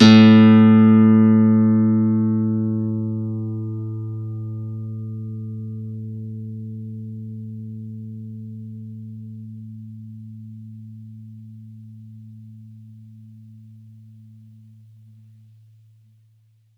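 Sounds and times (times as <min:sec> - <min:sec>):
campfire nylon guitar: 0:00.0 - 0:12.5.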